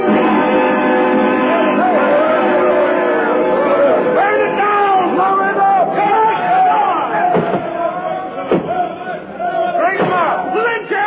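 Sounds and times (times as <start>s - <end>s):
angry mob yelling: 0.1s - 11.0s.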